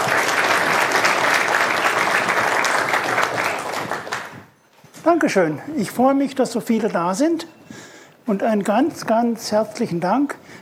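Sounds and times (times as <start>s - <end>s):
audience applause: 0.0s - 4.5s
speech: 5.0s - 7.6s, 8.3s - 10.6s.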